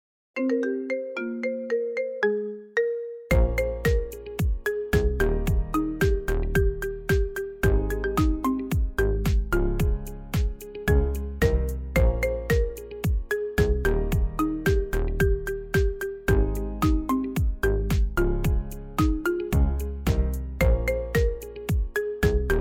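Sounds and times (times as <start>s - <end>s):
marimba remix ringtone: 0.4s - 22.5s.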